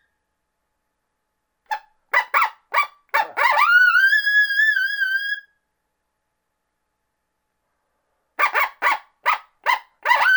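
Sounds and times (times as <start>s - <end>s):
coyote barks: 1.7s - 5.2s, 8.4s - 10.3s.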